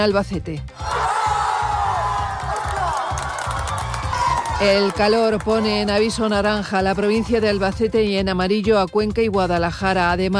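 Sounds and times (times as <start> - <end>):
speech: 0.0 - 0.8, 4.6 - 10.3
large crowd cheering a goal: 0.8 - 6.6.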